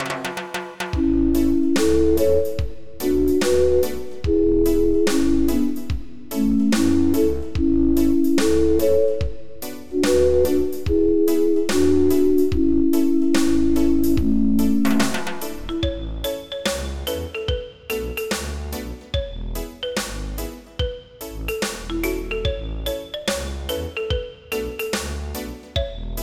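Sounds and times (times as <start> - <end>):
reggae music: 0.0 - 26.2.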